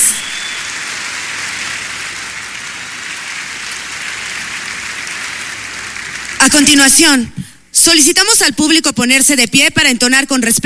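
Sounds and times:
audience applause: 0.0 - 6.7
speech: 6.4 - 10.6.

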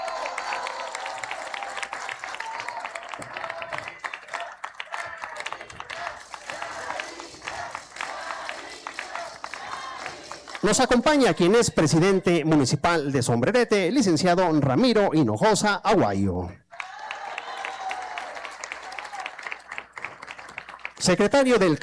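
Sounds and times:
audience applause: 0.0 - 11.1, 16.7 - 21.8
speech: 10.7 - 16.6, 21.0 - 21.8.

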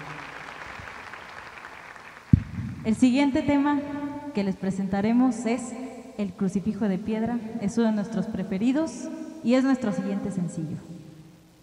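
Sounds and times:
live concert audience applause for the orchestra: 0.0 - 2.4
speech: 2.8 - 11.0.

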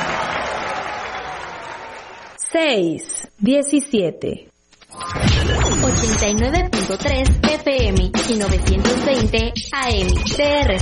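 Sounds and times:
audience applause: 0.0 - 2.4
speech: 2.5 - 4.5, 5.9 - 10.7.

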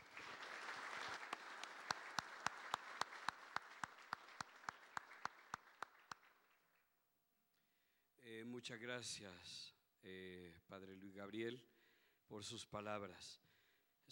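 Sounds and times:
strong audience applause at a seminary: 0.0 - 6.8
speech: 8.3 - 13.5.

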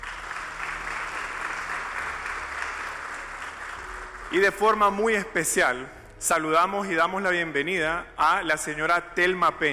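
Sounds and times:
audience applause: 0.0 - 4.7
speech: 4.3 - 9.7.

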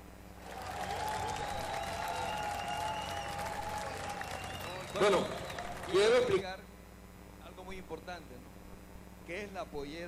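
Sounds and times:
loud applause from audience: 0.4 - 6.4
speech: 5.0 - 6.6, 7.9 - 8.5, 9.3 - 10.0.

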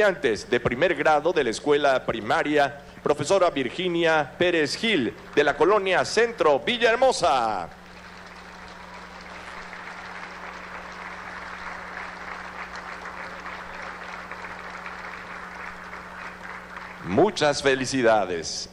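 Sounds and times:
speech: 0.0 - 7.8, 17.1 - 18.7
audience applause: 7.3 - 17.6.

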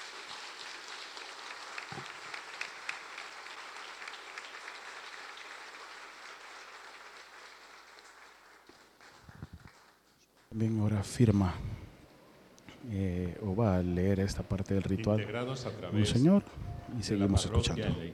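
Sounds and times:
applause in a church: 0.0 - 10.6
speech: 1.9 - 2.1, 10.6 - 11.7, 12.9 - 18.1.

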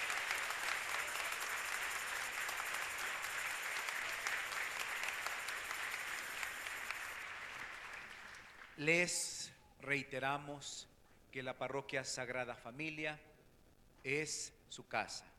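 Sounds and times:
crowd applause: 0.0 - 8.9
speech: 8.8 - 13.3, 14.0 - 15.3.

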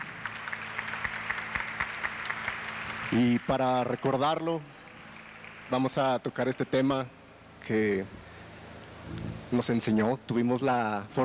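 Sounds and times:
audience applause: 0.0 - 4.4, 5.0 - 6.2
speech: 3.1 - 4.8, 5.7 - 8.3, 9.1 - 11.2.

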